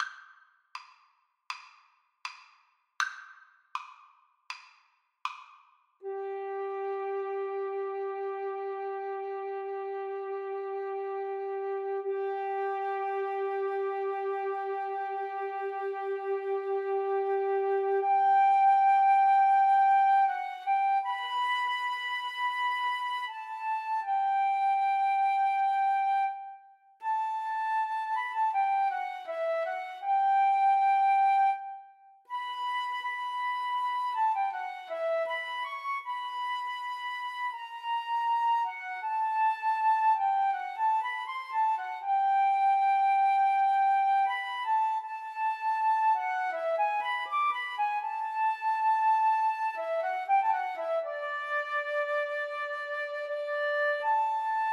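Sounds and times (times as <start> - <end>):
flute duet: 6.0 - 54.7.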